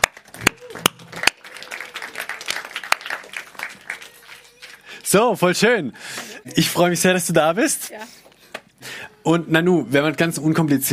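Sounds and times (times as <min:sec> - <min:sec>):
audience applause: 0:00.0 - 0:05.2
speech: 0:05.1 - 0:08.3, 0:09.3 - 0:10.9.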